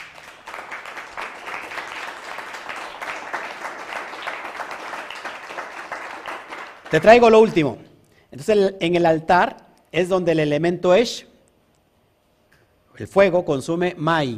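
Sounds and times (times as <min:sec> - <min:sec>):
audience applause: 0:00.0 - 0:07.6
speech: 0:06.9 - 0:11.3, 0:13.0 - 0:14.3.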